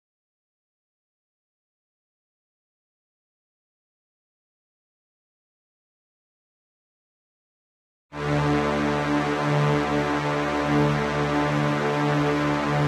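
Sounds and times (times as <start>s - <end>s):
instrumental pad: 8.2s - 12.8s.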